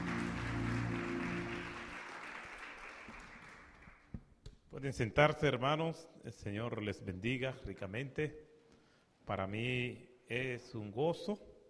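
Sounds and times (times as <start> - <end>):
audience applause: 0.0 - 4.1
speech: 4.8 - 8.5, 9.3 - 11.5.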